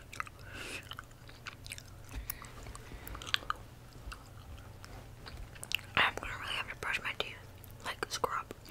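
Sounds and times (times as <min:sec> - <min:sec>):
chewing raw honeycomb: 0:00.0 - 0:06.2
low steady hum: 0:00.0 - 0:08.6.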